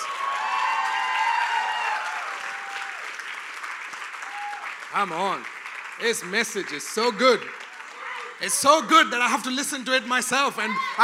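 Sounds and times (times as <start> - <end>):
cheers and shouts: 0.0 - 3.1, 4.2 - 4.7, 7.8 - 8.9, 10.4 - 11.0
large crowd applauding: 0.0 - 11.0
speech: 4.9 - 7.6, 8.4 - 11.0.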